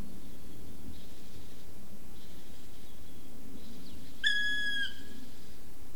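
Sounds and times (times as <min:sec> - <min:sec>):
black woodpecker loud plaintive ringing call: 0:04.2 - 0:05.0.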